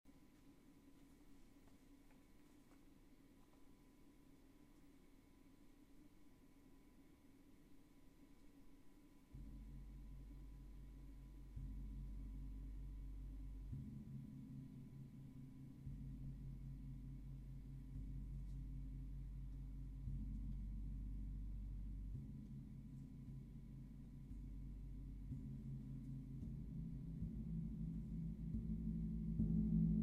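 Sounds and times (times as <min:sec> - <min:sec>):
gong: 0:09.3 - 0:30.0.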